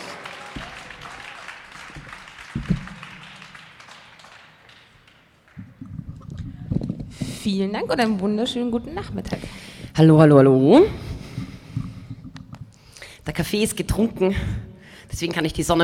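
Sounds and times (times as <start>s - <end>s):
audience whooping: 0.0s - 5.8s
audience applause: 0.0s - 6.9s
speech: 7.4s - 11.0s, 13.4s - 14.6s, 15.2s - 15.8s.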